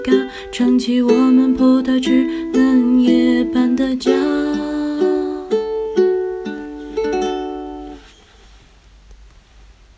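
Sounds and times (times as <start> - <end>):
person singing: 0.0 - 7.1
ukulele playing: 0.0 - 8.1.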